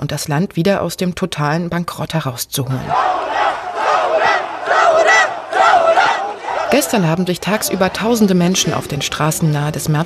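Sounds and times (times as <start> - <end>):
speech: 0.0 - 3.4, 6.7 - 10.0
protest crowd shouting and chanting in street: 2.8 - 9.1.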